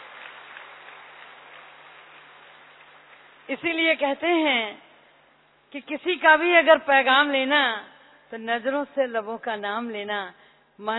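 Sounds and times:
large audience clapping: 0:00.0 - 0:03.8
speech: 0:03.5 - 0:04.8, 0:05.7 - 0:10.9.

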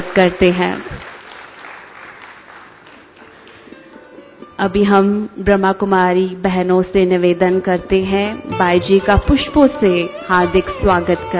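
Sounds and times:
speech: 0:00.0 - 0:01.0, 0:04.6 - 0:11.3
audience applause welcoming a guest: 0:00.0 - 0:03.8.

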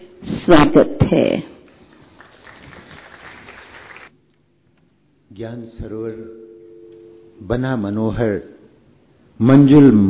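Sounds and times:
speech: 0:00.5 - 0:01.5, 0:05.4 - 0:06.4, 0:07.4 - 0:08.6, 0:09.4 - 0:10.0
applause welcoming a guest: 0:01.9 - 0:04.1.

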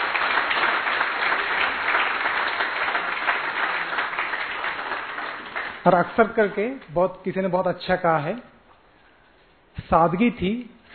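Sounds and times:
loud applause: 0:00.0 - 0:06.3
speech: 0:05.8 - 0:08.5, 0:09.8 - 0:10.9.

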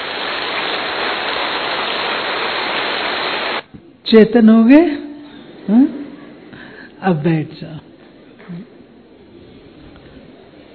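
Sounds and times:
group clapping hands: 0:00.0 - 0:03.6
speech: 0:04.1 - 0:05.0, 0:05.7 - 0:06.0, 0:07.0 - 0:07.9.

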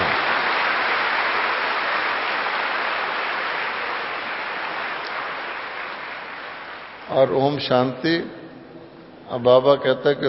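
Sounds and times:
audience clapping loudly: 0:00.0 - 0:07.4
speech: 0:07.1 - 0:08.4, 0:09.3 - 0:10.2.

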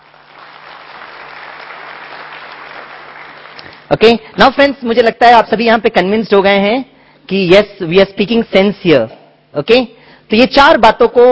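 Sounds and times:
audience applause: 0:00.0 - 0:03.8
speech: 0:03.9 - 0:11.3.

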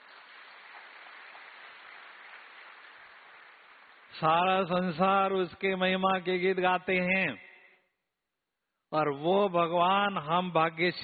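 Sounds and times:
audience clapping: 0:00.0 - 0:04.2
speech: 0:04.1 - 0:07.5, 0:08.9 - 0:11.0.

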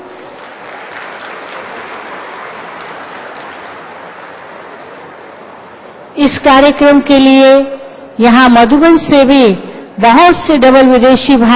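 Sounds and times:
large crowd applause: 0:00.0 - 0:06.1
speech: 0:06.2 - 0:11.5.

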